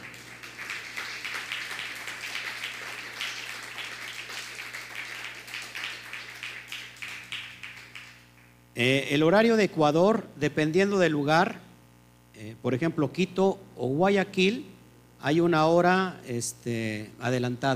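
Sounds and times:
loud applause: 0.0 - 8.3
speech: 8.8 - 11.6, 12.4 - 17.7.

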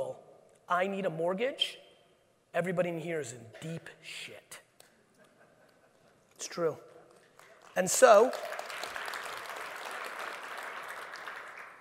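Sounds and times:
speech: 0.7 - 1.8, 2.5 - 4.6, 6.4 - 6.9, 7.8 - 8.6
audience clapping during a live talk: 7.1 - 11.7.

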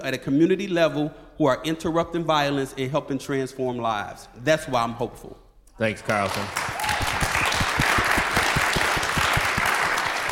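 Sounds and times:
speech: 0.0 - 6.7
audience applause: 6.1 - 10.3.

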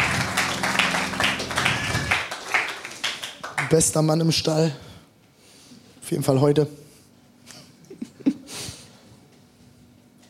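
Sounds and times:
audience applause: 0.0 - 4.2
speech: 3.7 - 4.9, 6.1 - 6.8.

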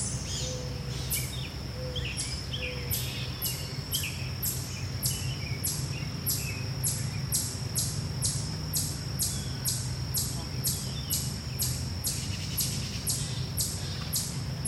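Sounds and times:
birds chirping in a park: 0.0 - 14.6
steady low rumble of passing vehicles: 0.0 - 14.6
rapid regular high insect ticking: 2.9 - 14.6
faint voices: 10.2 - 10.8.

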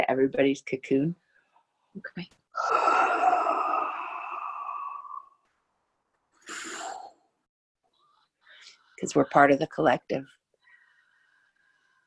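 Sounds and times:
speech: 0.0 - 1.2, 2.0 - 2.9, 9.0 - 10.4
deep breath blown out: 2.6 - 5.4, 6.4 - 7.3.

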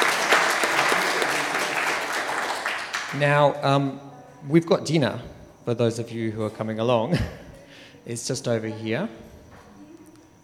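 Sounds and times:
audience applause: 0.0 - 3.4
speech: 3.1 - 7.4, 8.0 - 9.3.

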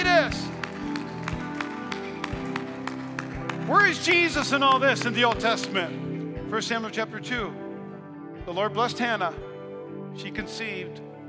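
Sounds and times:
audience clapping in rhythm: 0.0 - 6.0
music: 0.0 - 11.2
speech: 3.7 - 7.6, 8.5 - 9.5, 10.2 - 11.0.

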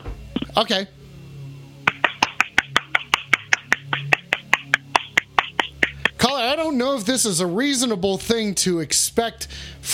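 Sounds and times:
speech: 0.6 - 1.0, 6.4 - 9.9
hands clapping: 1.9 - 6.2.

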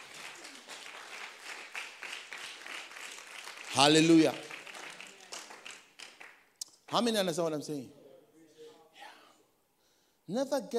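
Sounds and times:
audience clapping: 0.0 - 7.0
speech: 3.8 - 4.4, 6.9 - 8.0, 10.3 - 10.7.

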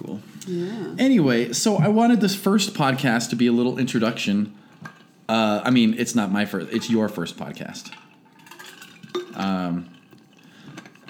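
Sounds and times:
speech: 0.5 - 4.6, 5.3 - 8.0, 9.4 - 9.9
drinking water from a glass: 7.8 - 11.0.

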